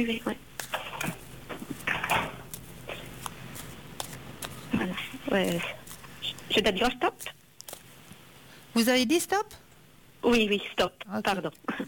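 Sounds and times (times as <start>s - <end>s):
speech: 0.0s - 1.2s, 5.3s - 5.8s, 6.5s - 7.4s, 8.8s - 9.6s, 10.2s - 11.8s
playing cards shuffled during a card reading: 0.5s - 8.2s.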